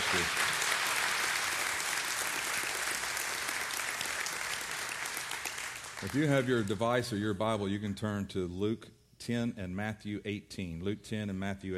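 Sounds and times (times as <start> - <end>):
audience applause: 0.0 - 6.8
speech: 0.1 - 0.5, 6.0 - 11.7.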